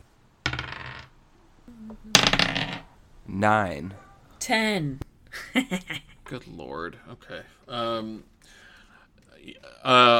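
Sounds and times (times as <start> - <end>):
dice rolled clattering across a hard surface: 0.5 - 1.1, 2.2 - 2.9
speech: 1.9 - 2.5, 3.3 - 5.0, 5.6 - 8.6, 9.4 - 10.1.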